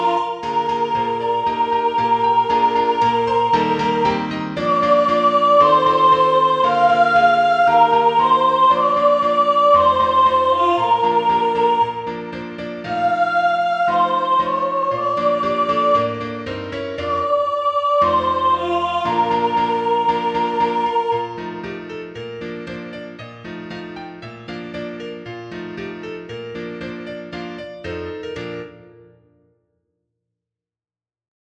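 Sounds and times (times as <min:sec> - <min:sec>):
soprano singing: 0:00.0 - 0:21.9.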